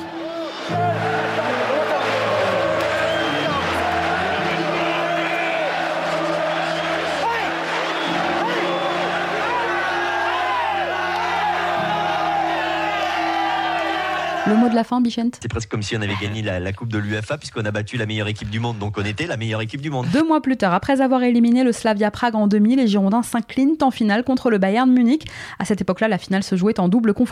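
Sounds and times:
huge stadium crowd roaring and cheering at the final whistle: 0.0s - 14.8s
speech: 14.5s - 27.3s.

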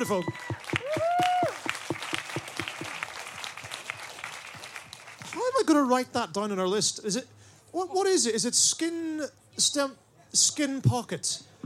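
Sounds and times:
speech: 0.0s - 0.7s, 5.7s - 11.5s
whoop or whistle: 0.0s - 1.6s
audience applauding: 0.0s - 5.6s.

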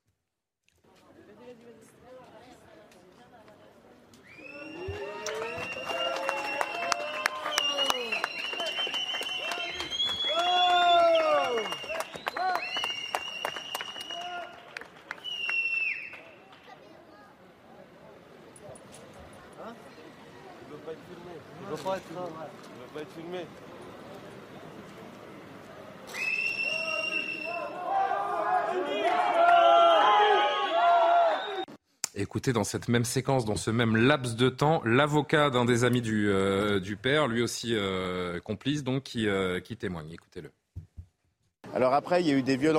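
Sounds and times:
crowd applauding and cheering outdoors: 4.5s - 16.7s, 26.4s - 31.7s
speech: 22.1s - 23.7s, 32.2s - 40.6s, 41.8s - 42.7s.

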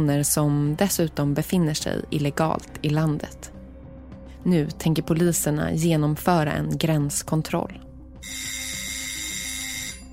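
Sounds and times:
speech: 0.0s - 3.6s, 4.4s - 8.6s
apartment doorbell ringing: 8.2s - 10.1s.

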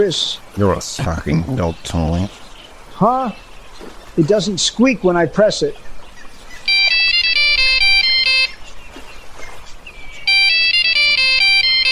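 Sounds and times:
speech: 0.0s - 2.4s, 3.0s - 5.9s
satellite phone ringing: 6.7s - 8.6s, 10.2s - 11.8s.

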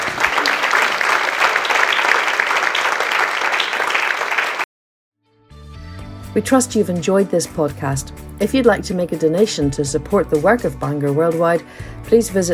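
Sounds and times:
crowd applauding: 0.0s - 4.7s
speech: 6.4s - 12.5s.

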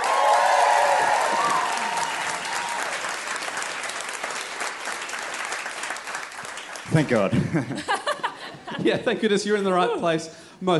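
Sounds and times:
whoops and cheers: 0.0s - 3.2s
crowd applause: 0.0s - 8.5s
speech: 6.9s - 8.0s, 8.8s - 10.7s
laughter: 7.1s - 9.1s.

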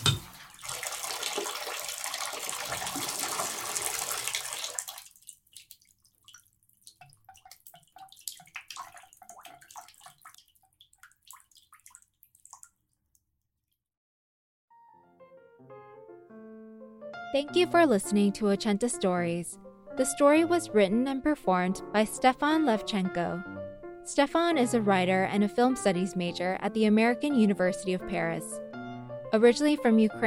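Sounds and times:
shower water running: 0.0s - 12.7s
speech: 17.3s - 23.5s, 24.1s - 28.6s, 29.3s - 30.2s.

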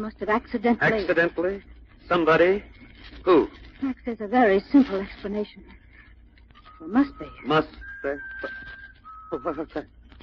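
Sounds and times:
speech: 0.0s - 5.8s, 6.8s - 10.2s
strange bird-like whistling: 6.7s - 9.8s.

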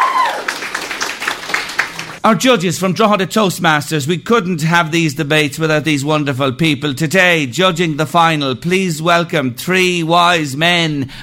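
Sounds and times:
audience applause: 0.0s - 2.2s
speech: 2.2s - 11.2s.

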